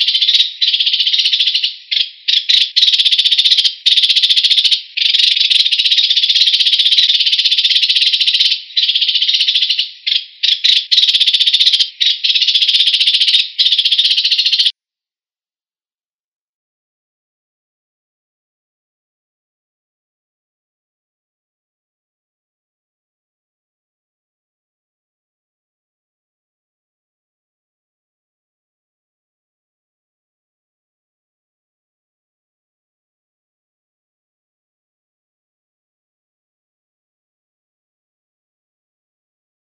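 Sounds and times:
house sparrows chirping: 0.0 - 14.7.

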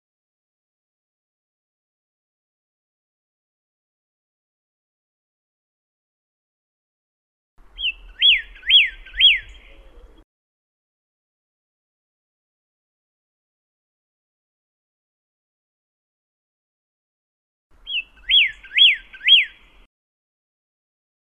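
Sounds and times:
pyrrhuloxia singing thin and slurred whistles: 7.7 - 10.2, 17.8 - 19.9.

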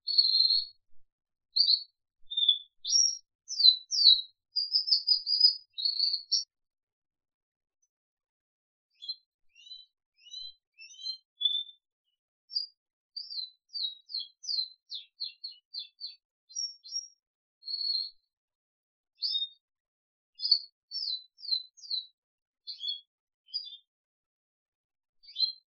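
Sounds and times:
crested canary singing: 0.1 - 0.7, 1.6 - 6.5, 9.0 - 11.8, 12.5 - 18.1, 22.7 - 23.8.

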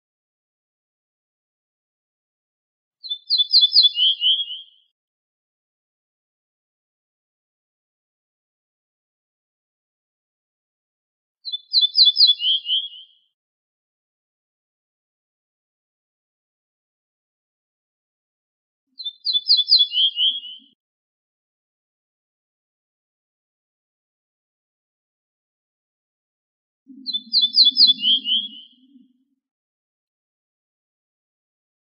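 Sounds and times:
Ortolan bunting singing a short phrase: 3.0 - 4.9, 11.4 - 13.2, 19.0 - 20.8, 26.9 - 29.3.

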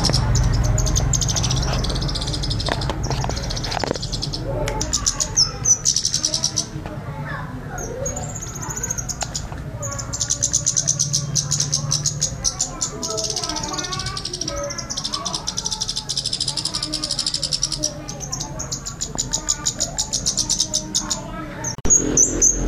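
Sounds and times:
scarlet-headed flowerpecker ticking: 0.0 - 6.8, 7.7 - 22.6.

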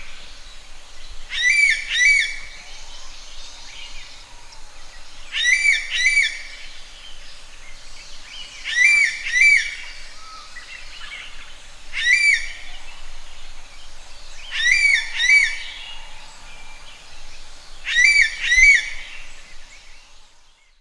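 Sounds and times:
common green magpie Cissa chinensis call: 1.3 - 6.7, 8.4 - 13.0, 14.4 - 16.8, 17.8 - 19.3.

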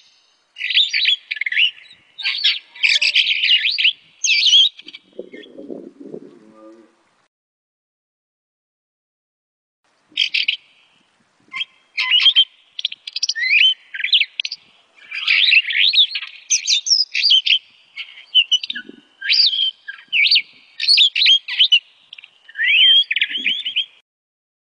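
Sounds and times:
starling singing: 0.0 - 7.0, 10.2 - 10.7, 11.5 - 24.0.

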